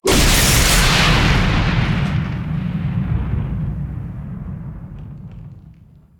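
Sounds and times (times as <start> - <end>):
lightning strike impact: 0.0 - 5.7.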